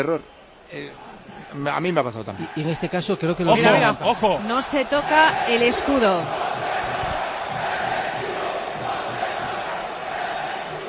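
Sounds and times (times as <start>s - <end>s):
speech: 0.0s - 6.6s
stadium crowd shouting from the south stand: 2.3s - 10.8s.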